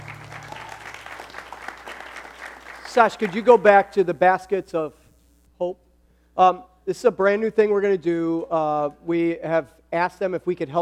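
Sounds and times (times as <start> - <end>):
audience clapping: 0.0 - 3.8
speech: 2.9 - 5.0, 5.6 - 5.8, 6.4 - 10.8.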